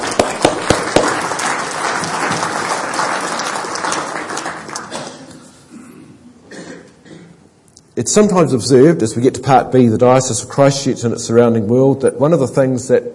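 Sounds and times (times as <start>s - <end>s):
audience applause: 0.0s - 5.3s
speech: 8.0s - 13.1s.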